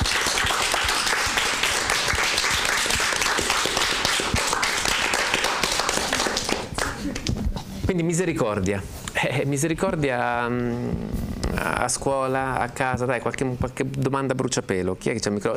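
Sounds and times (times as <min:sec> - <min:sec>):
audience applause: 0:00.0 - 0:07.3
speech: 0:07.9 - 0:15.5.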